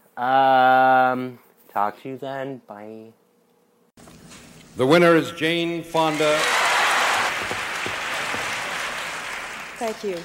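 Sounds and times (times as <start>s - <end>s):
speech: 0.2s - 3.2s, 4.8s - 6.6s, 9.8s - 10.2s
audience applauding at awards ceremony: 6.0s - 10.2s.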